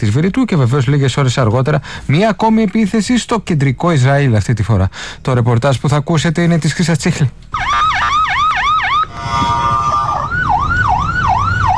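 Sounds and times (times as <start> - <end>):
speech: 0.0 - 8.0
air-raid alarm sirens wailing: 7.5 - 11.7
low rumble: 8.9 - 11.7.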